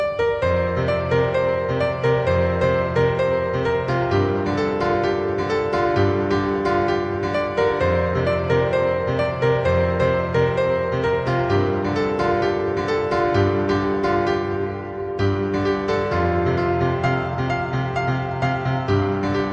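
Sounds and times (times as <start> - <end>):
piano: 0.0 - 19.5.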